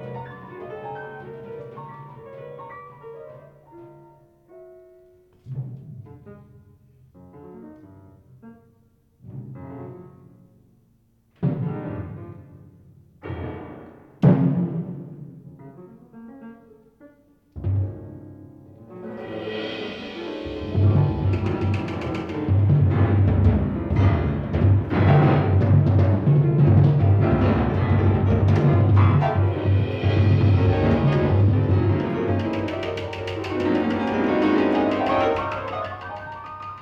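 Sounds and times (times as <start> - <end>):
piano in a duet with percussion: 0.0 - 36.8
percussion in a duet with piano: 18.8 - 36.8.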